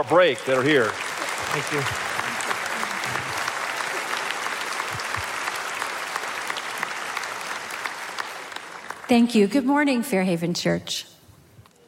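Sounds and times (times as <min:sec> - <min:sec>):
speech: 0:00.0 - 0:02.1, 0:09.1 - 0:11.1
audience applause: 0:00.0 - 0:09.2.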